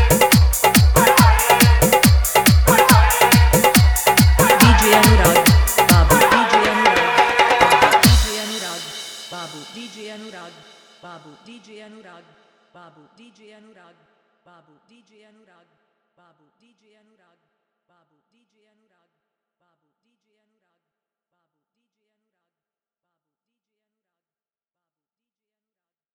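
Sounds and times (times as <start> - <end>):
hard dholki bass mix: 0.0 - 10.4.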